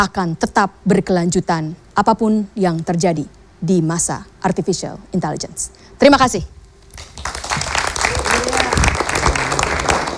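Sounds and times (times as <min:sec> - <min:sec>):
speech: 0:00.0 - 0:07.4
audience applause: 0:07.0 - 0:10.1.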